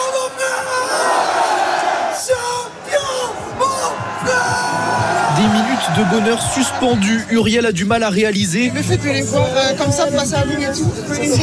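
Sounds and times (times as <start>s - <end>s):
crowd cheering football players on stage: 0.0s - 7.8s
speech: 5.4s - 11.4s.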